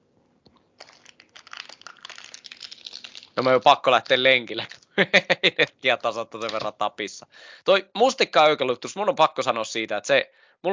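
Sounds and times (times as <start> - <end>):
snack bar being bitten and eaten: 0.6 - 5.0
crinkling: 0.7 - 5.0, 5.9 - 6.8
speech: 3.4 - 10.7.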